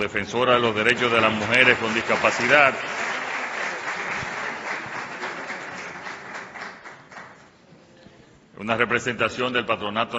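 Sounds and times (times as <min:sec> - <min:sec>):
speech: 0:00.0 - 0:03.0, 0:08.6 - 0:10.1
crowd applause: 0:00.8 - 0:07.5.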